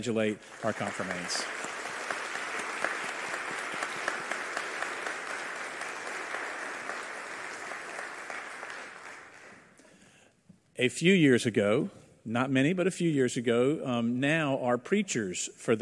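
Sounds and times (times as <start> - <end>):
speech: 0.0 - 1.6, 10.8 - 15.8
crowd clapping in a large room: 0.0 - 9.9.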